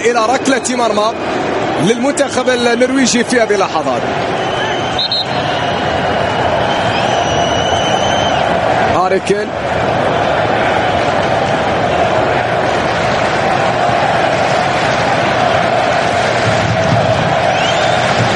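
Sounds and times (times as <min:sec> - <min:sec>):
speech: 0:00.0 - 0:04.6, 0:09.1 - 0:09.9
English football fans roaring in stadium stands: 0:00.0 - 0:18.3.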